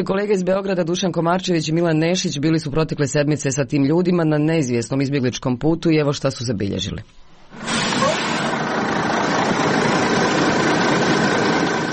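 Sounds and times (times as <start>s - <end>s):
speech: 0.0s - 7.7s
large bus engine idling: 7.5s - 11.9s.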